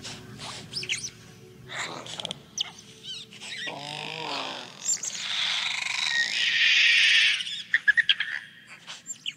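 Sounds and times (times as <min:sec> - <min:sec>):
Compsognathus dinosaur sounds: 0:03.5 - 0:07.4.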